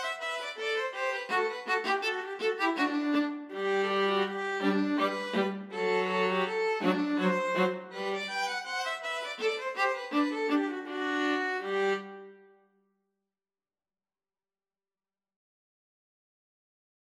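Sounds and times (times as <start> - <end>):
violin and viola duet: 0.0 - 12.5.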